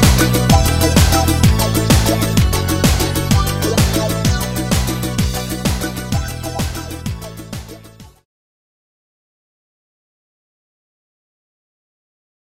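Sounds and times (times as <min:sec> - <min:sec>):
instrumental music: 0:00.0 - 0:08.2.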